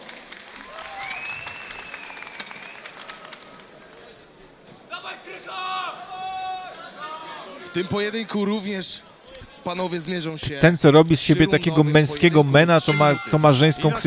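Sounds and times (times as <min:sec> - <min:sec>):
crowd applause: 0:00.0 - 0:04.4
shouts and cheers: 0:00.6 - 0:02.2, 0:04.9 - 0:07.6
whistles: 0:00.8 - 0:03.2
speech: 0:07.7 - 0:14.0.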